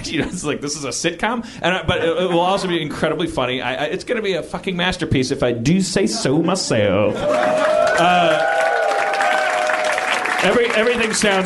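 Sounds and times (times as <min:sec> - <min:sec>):
speech: 0:00.1 - 0:08.5, 0:10.4 - 0:11.4
audience applause: 0:07.2 - 0:11.4.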